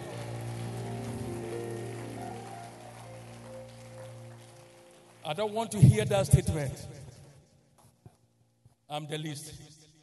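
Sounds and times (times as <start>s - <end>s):
audience clapping: 0.0s - 7.3s
speech: 5.2s - 7.0s, 8.9s - 9.6s.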